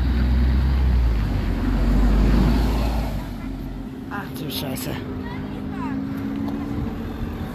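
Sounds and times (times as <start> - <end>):
motorway traffic engine rumble: 0.0 - 7.5
speech: 4.7 - 5.2.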